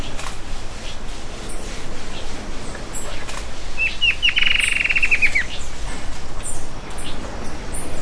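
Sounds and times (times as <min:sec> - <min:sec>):
bird descending chirps: 0:03.8 - 0:05.5.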